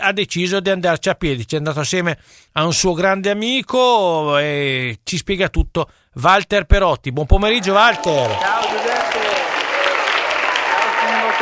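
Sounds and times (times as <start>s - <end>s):
speech: 0.0s - 9.0s
crowd clapping to greet a runner on the beach at Fiumaretta: 7.5s - 11.3s.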